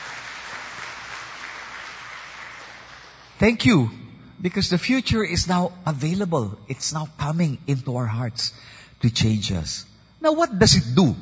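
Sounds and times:
church congregation applauding the Lord: 0.0 - 3.6
speech: 3.4 - 11.2.

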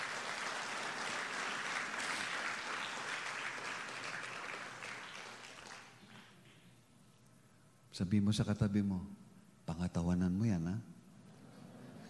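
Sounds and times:
congregation applause for the Lord at a church service: 0.0 - 6.7
speech: 8.0 - 9.2, 9.8 - 10.9.

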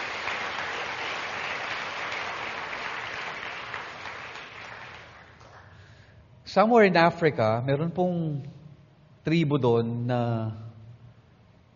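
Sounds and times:
church congregation applause: 0.0 - 6.0
speech: 6.5 - 8.6, 9.2 - 10.6.

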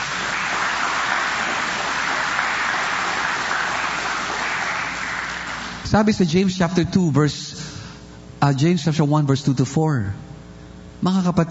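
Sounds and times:
church congregation clapping in praise: 0.0 - 6.1
speech: 5.9 - 7.7, 8.4 - 10.2, 11.0 - 11.4.

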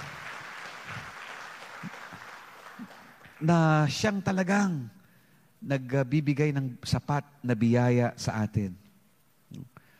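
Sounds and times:
congregation applauding in praise of God during a church service: 0.0 - 3.9
speech: 3.4 - 5.0, 5.6 - 8.8.

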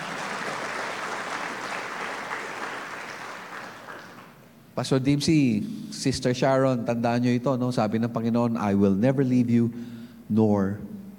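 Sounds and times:
church congregation clapping in praise during a sermon: 0.0 - 4.6
speech: 4.8 - 10.9.

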